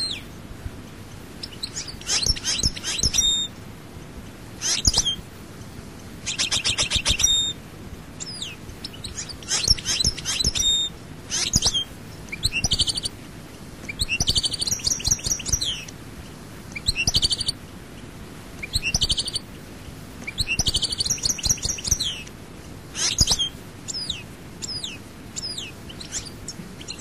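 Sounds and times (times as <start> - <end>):
steady background hiss: 0.0 - 26.9
European goldfinch twittering and chips: 1.4 - 3.5, 4.6 - 5.2, 6.2 - 7.6, 8.2 - 13.1, 13.9 - 15.9, 16.8 - 17.6, 18.6 - 19.5, 20.3 - 22.3, 23.0 - 26.9.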